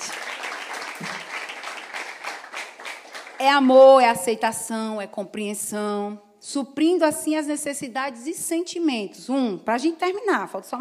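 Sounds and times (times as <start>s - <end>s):
audience applauding: 0.0s - 3.5s
speech: 3.4s - 10.7s.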